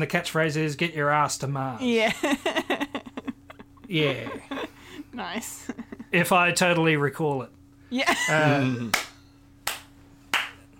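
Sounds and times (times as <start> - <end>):
speech: 0.0 - 2.8, 3.9 - 4.6, 5.2 - 9.1
laughter: 2.1 - 6.2, 8.0 - 9.0
hand clapping: 8.8 - 10.7.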